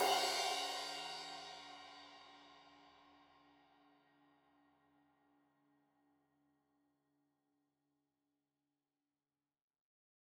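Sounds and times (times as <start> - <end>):
15 inch crash cymbal edge hit: 0.0 - 2.0.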